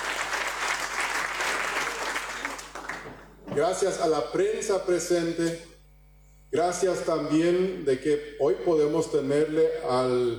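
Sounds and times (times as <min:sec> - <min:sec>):
audience applause: 0:00.0 - 0:03.4
speech: 0:03.6 - 0:05.7, 0:06.5 - 0:10.3.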